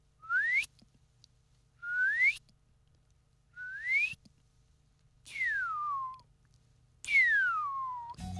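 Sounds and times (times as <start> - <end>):
person whistling an imitation of a Shining Cuckoo: 0.2 - 0.7, 1.8 - 2.4, 3.6 - 4.2, 5.3 - 6.2, 7.1 - 8.2.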